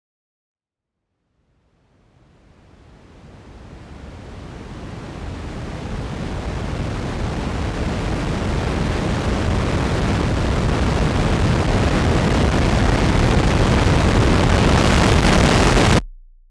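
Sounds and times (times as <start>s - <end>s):
reversed noise: 4.7s - 16.0s.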